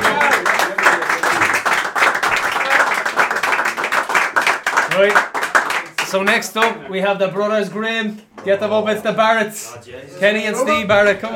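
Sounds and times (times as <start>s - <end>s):
audience applause: 0.0s - 6.4s
speech: 6.1s - 11.3s.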